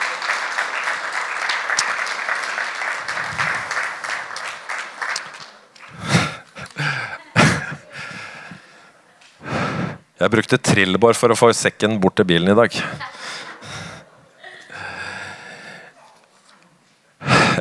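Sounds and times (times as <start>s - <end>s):
audience applause: 0.0s - 8.8s, 12.5s - 15.8s
laughter: 0.0s - 9.4s, 10.2s - 16.3s
speech: 10.2s - 13.1s.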